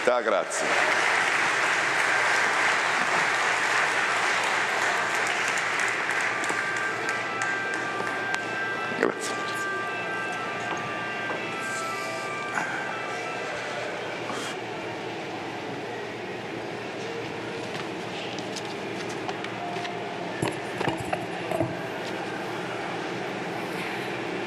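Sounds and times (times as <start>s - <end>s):
crowd applauding: 0.0s - 8.7s
faint thin tonal ringing: 6.4s - 18.2s, 19.5s - 24.4s.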